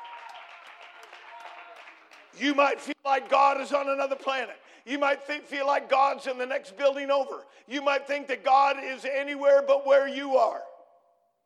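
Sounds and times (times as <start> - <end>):
crowd clapping: 0.0 - 4.5
speech: 2.4 - 10.7.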